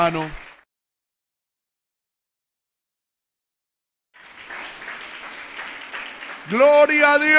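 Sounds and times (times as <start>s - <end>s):
speech: 0.0s - 0.4s, 6.5s - 7.3s
audience applauding: 0.0s - 0.6s, 4.2s - 7.3s.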